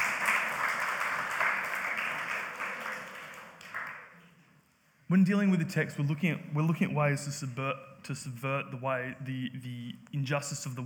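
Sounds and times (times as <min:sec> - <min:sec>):
audience applause: 0:00.0 - 0:04.2
speech: 0:05.1 - 0:10.8.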